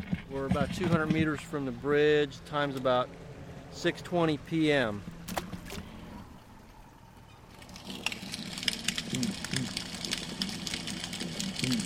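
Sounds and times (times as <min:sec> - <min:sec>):
speech: 0:00.3 - 0:05.1
snapping shrimp crackling underwater: 0:07.6 - 0:11.8.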